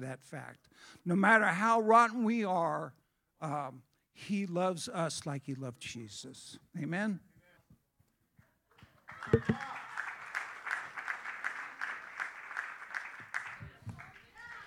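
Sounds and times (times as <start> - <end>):
speech: 0.0 - 7.3, 9.2 - 9.8
audience applauding: 9.1 - 14.6.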